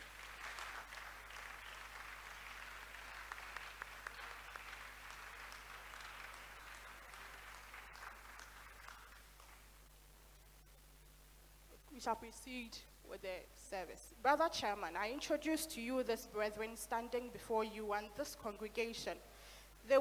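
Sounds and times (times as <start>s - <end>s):
audience applause: 0.0s - 9.8s
low steady hum: 0.0s - 20.0s
speech: 12.0s - 20.0s.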